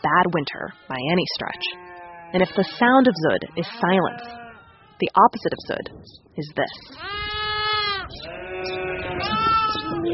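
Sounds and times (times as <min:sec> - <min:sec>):
speech: 0:00.1 - 0:04.4, 0:05.0 - 0:07.4
about a hundred lambs bleating in a crowded pen in Mongolia: 0:00.5 - 0:05.0, 0:06.9 - 0:10.1.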